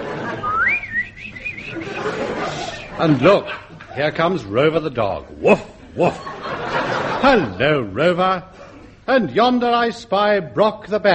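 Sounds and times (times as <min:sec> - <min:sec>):
laughter: 0:00.0 - 0:09.1
person whistling a birdlike trill mimicking birds twittering: 0:00.4 - 0:02.0
speech: 0:03.0 - 0:06.4, 0:07.2 - 0:11.1.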